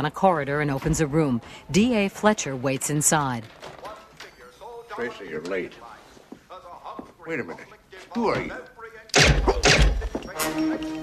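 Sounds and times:
speech: 0.0s - 3.8s, 5.0s - 5.9s, 6.6s - 9.8s, 10.4s - 11.0s
shots from a silenced gun: 9.1s - 10.0s.

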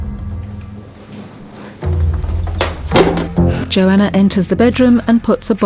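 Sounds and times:
bullet knocked down cellar stairs: 2.0s - 3.4s
speech: 3.7s - 5.6s.

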